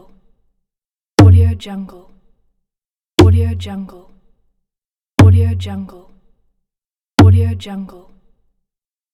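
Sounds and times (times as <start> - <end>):
djembe drum kicks: 1.2 - 1.5, 3.2 - 3.5, 5.2 - 5.5, 7.2 - 7.5.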